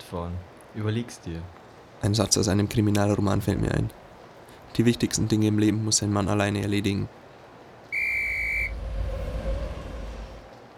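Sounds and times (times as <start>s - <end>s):
speech: 0.1s - 4.0s, 4.7s - 7.2s
train whistle as train arrives: 7.9s - 9.8s
low continuous train rumble: 8.7s - 10.6s.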